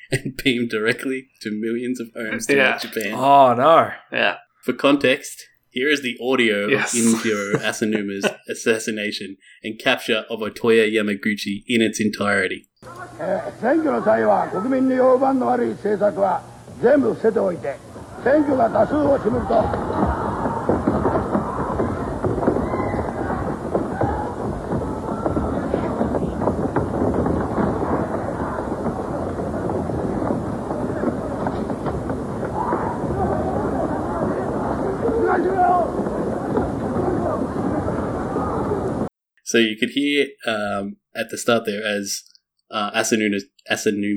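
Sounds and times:
speech: 0.1s - 20.1s, 39.5s - 44.1s
laughter: 2.2s - 3.2s, 6.7s - 8.6s, 18.2s - 22.2s
crowd running: 12.8s - 39.1s
footsteps across stage: 17.8s - 33.5s.

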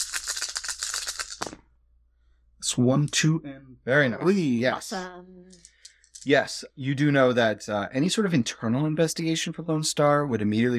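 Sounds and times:
handful of dice rattling and clattering: 0.0s - 1.6s, 5.6s - 6.3s
speech: 2.7s - 10.7s.

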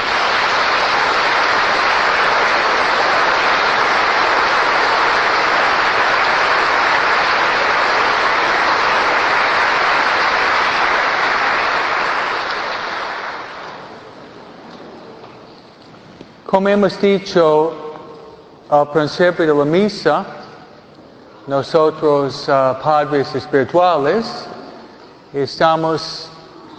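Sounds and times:
audience applause: 0.0s - 14.2s
speech: 16.6s - 17.8s, 18.7s - 20.4s, 21.5s - 24.5s, 25.3s - 26.3s.

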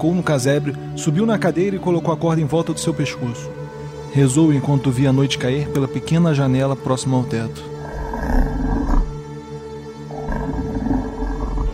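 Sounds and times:
speech: 0.0s - 8.5s
beast's deep menacing growl: 7.7s - 9.3s, 10.0s - 11.7s.

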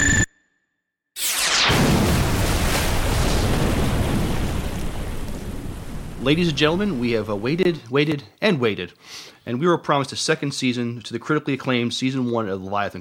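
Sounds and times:
electronic beeps: 0.0s - 0.3s
air-to-surface missile explosion blast and roaring rumble: 1.2s - 7.6s
speech: 6.2s - 12.9s.

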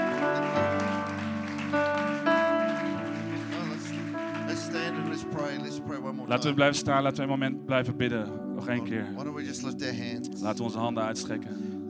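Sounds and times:
audience applause: 0.0s - 5.6s
sustained held musical chords: 0.0s - 11.8s
speech: 6.3s - 11.8s.

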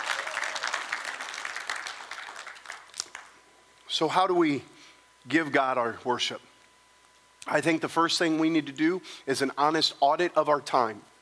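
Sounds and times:
audience clapping: 0.0s - 3.4s
speech: 3.9s - 6.5s, 7.4s - 11.1s.

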